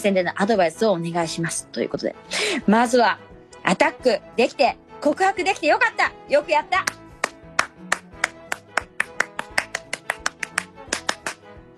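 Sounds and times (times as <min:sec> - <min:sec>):
speech: 0:00.0 - 0:07.0
single person clapping echoing around the room: 0:06.8 - 0:11.5.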